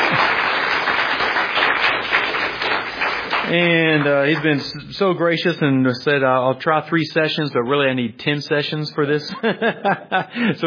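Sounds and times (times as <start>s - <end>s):
audience applause: 0.0s - 4.6s
speech: 3.5s - 10.6s
laughter: 9.2s - 10.6s.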